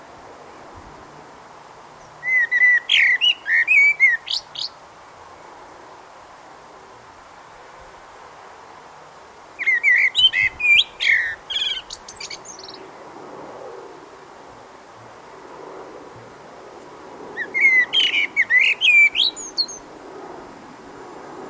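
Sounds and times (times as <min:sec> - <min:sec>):
Eurasian blackbird fluty whistled song: 0:02.2 - 0:04.8, 0:09.6 - 0:12.8, 0:17.4 - 0:19.8.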